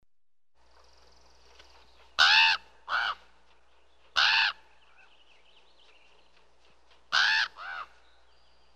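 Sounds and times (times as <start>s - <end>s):
crow cawing harshly: 2.2s - 3.2s, 4.2s - 4.6s, 7.1s - 8.0s.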